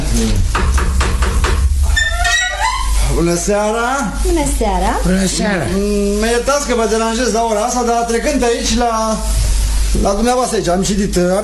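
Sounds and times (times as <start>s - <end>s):
speech: 0.2s - 0.7s, 3.2s - 11.4s
knocking on a door: 0.5s - 1.8s.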